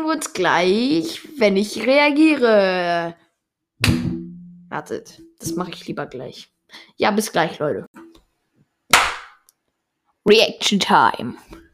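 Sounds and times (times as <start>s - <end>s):
speech: 0.0s - 3.2s, 3.8s - 4.1s, 4.7s - 7.9s, 10.3s - 11.6s
single loud hand clap: 8.9s - 9.4s.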